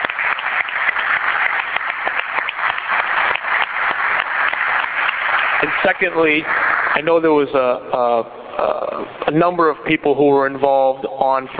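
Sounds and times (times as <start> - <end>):
round of applause: 0.0 - 7.3
speech: 5.6 - 11.5.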